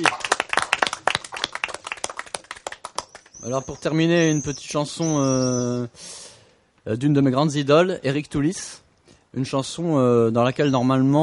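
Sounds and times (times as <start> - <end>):
speech: 0.0 - 0.2, 3.4 - 6.2, 6.8 - 11.2
audience applauding a performer at a live show: 0.0 - 3.4.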